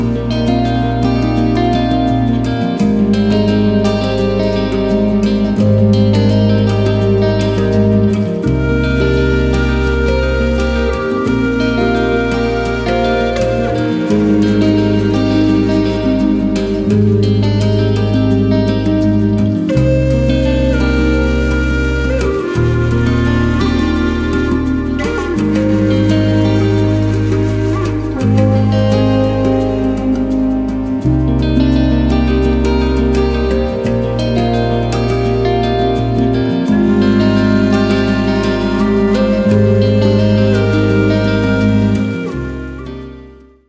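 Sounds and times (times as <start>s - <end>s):
healing native flute melody: 0.0s - 43.6s.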